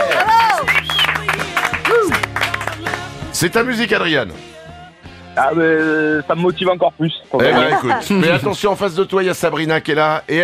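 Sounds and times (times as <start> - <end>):
audience applause: 0.0 - 3.0
cheering whoops or whistles: 0.1 - 1.2
speech: 3.4 - 4.6, 5.4 - 10.4
laughter: 7.4 - 8.7.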